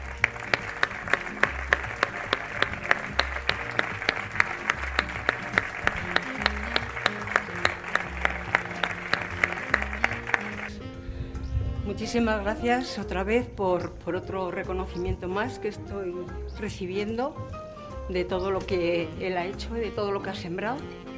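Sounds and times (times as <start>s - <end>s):
audience applause: 0.0s - 10.8s
speech: 12.1s - 21.0s.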